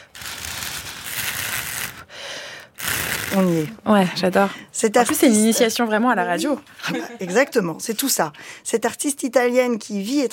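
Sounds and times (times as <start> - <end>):
blowing on thin paper strips making a wind effect: 0.0 - 3.8
speech: 3.3 - 10.3.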